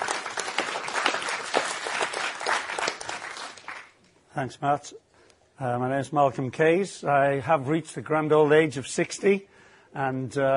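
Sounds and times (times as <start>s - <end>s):
audience applause: 0.0s - 4.0s
speech: 4.4s - 10.5s.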